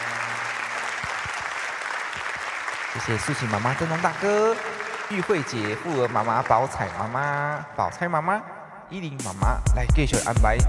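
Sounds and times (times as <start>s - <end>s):
audience clapping at a stage event with awards: 0.0s - 8.1s
speech: 3.0s - 10.6s.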